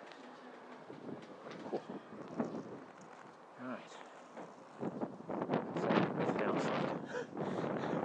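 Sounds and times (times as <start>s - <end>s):
wind blowing outdoors: 0.8s - 3.3s, 4.5s - 8.0s.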